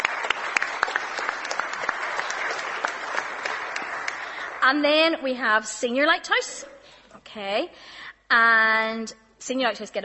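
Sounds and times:
audience clapping together: 0:00.0 - 0:05.2
speech: 0:04.6 - 0:10.0.

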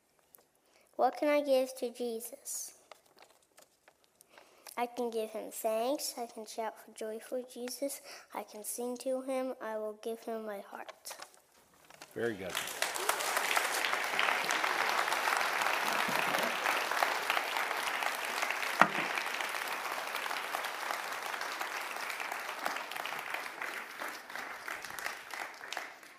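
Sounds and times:
speech: 0:01.0 - 0:02.8, 0:04.8 - 0:11.2, 0:12.2 - 0:12.8
audience applause: 0:12.2 - 0:26.1.

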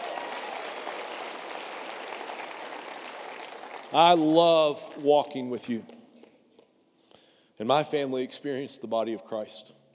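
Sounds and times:
audience applause: 0:00.0 - 0:04.2
speech: 0:03.9 - 0:06.0, 0:07.6 - 0:09.8.

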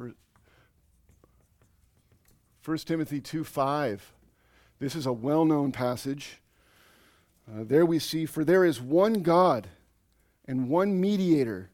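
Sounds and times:
pen or marker writing by hand: 0:00.8 - 0:02.6
speech: 0:02.6 - 0:04.2, 0:04.8 - 0:06.4, 0:07.5 - 0:09.8, 0:10.5 - 0:11.7.

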